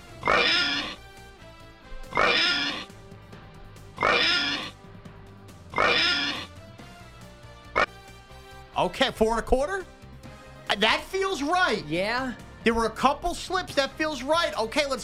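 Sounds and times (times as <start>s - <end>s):
person imitating a pig oinking: 0.2s - 1.0s, 2.1s - 2.9s, 4.0s - 4.7s, 5.7s - 6.5s
speech: 8.9s - 10.0s, 10.8s - 15.0s.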